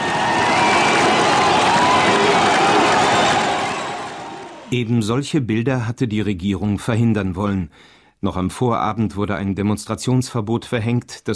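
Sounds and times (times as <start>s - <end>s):
jubilant crowd cheering in city square: 0.0s - 4.9s
speech: 4.7s - 11.3s.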